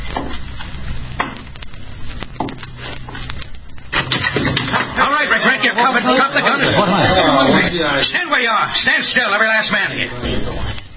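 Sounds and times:
steady noisy crackle: 0.0s - 10.9s
wooden door being kicked open: 3.9s - 5.0s
laughter: 5.0s - 8.0s
speech: 5.8s - 10.8s.

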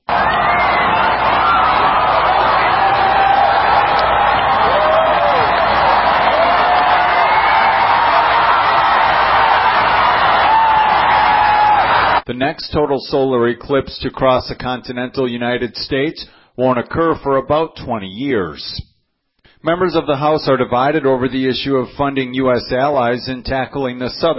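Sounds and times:
crowd cheering at eclipse watch party at Indianapolis Motor Speedway: 0.0s - 12.2s
speech: 12.4s - 18.9s, 19.6s - 24.3s.

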